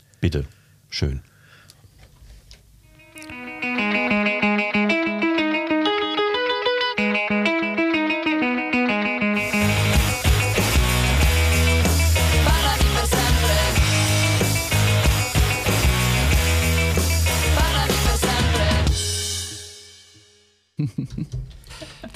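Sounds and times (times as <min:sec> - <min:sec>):
speech: 0:00.2 - 0:01.3
Italian alternative band song: 0:03.0 - 0:20.2
laughter: 0:20.8 - 0:22.1.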